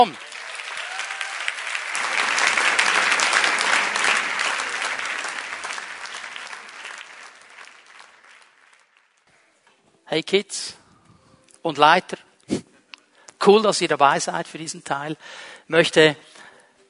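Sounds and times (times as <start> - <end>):
speech: 0.0 - 0.2, 10.1 - 10.8, 11.6 - 12.7, 13.4 - 16.3
crowd applauding to welcome children: 0.0 - 9.4.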